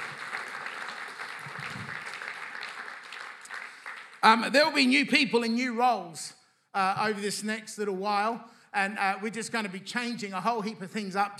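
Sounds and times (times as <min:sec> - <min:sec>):
audience applause: 0:00.0 - 0:04.6
speech: 0:04.2 - 0:11.3.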